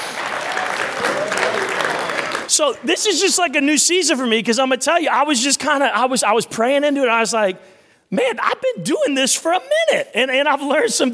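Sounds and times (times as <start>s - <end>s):
audience hand clapping: 0.0s - 2.9s
speech: 2.6s - 11.1s.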